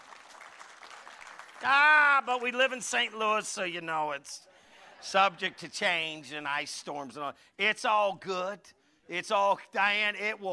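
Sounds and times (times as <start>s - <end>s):
audience applause: 0.0s - 3.2s
speech: 1.6s - 10.5s.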